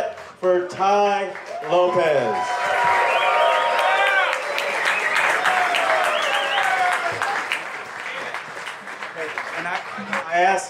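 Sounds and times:
speech: 0.4s - 3.0s, 10.0s - 10.6s
large audience applause: 1.4s - 10.5s
cheering and whoops: 1.5s - 7.6s.

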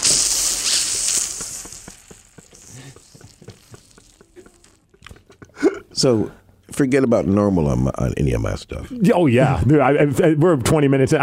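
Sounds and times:
voice imitating bacon sizzling in a pan: 0.0s - 6.0s
speech: 6.0s - 11.2s.

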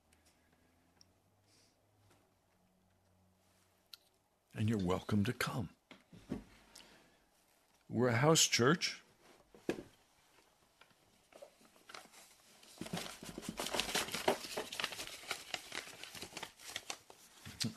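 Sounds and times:
speech: 4.6s - 5.8s, 7.9s - 9.0s
paper rustling as an envelope is dumped out: 10.9s - 17.7s.

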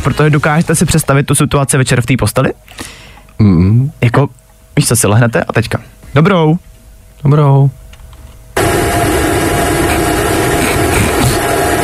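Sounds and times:
speech: 0.0s - 7.8s
vacuum cleaner starting up: 8.6s - 11.8s.

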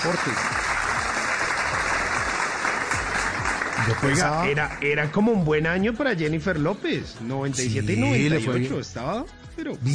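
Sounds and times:
speech: 0.0s - 0.7s, 3.8s - 9.9s
applause: 0.0s - 5.4s.

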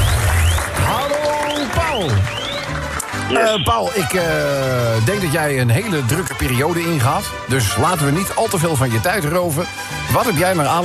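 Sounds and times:
applause sound effect: 0.0s - 5.3s
speech: 3.3s - 10.8s.

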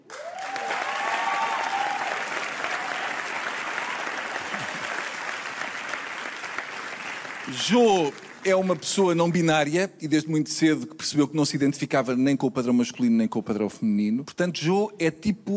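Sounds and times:
audience applause: 0.0s - 8.8s
people whooping: 0.1s - 5.4s
speech: 7.5s - 15.5s.

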